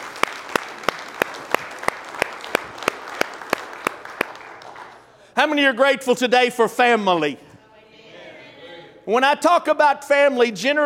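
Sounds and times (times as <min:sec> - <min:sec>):
audience applause: 0:00.0 - 0:05.1
speech: 0:05.4 - 0:07.5, 0:09.1 - 0:10.8.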